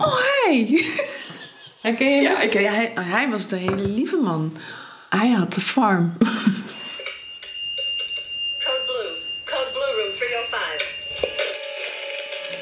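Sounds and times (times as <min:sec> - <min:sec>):
speech: 0:00.1 - 0:01.1, 0:01.8 - 0:06.5
hospital alarm beeping: 0:06.6 - 0:11.8.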